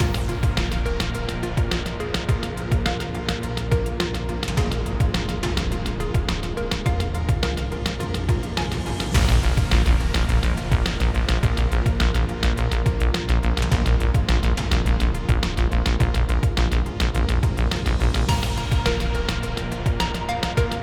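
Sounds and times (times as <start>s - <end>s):
suspense music at 105 BPM: 0.0s - 20.8s.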